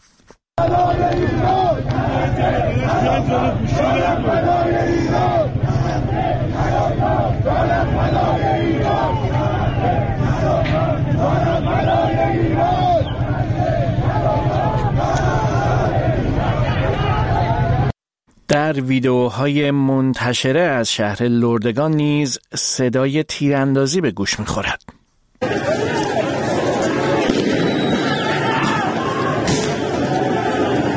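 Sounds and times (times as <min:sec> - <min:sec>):
shouting: 0:00.6 - 0:17.9, 0:25.4 - 0:30.9
street protesters chanting slogans: 0:00.6 - 0:17.9, 0:25.4 - 0:30.9
speech: 0:18.6 - 0:24.9.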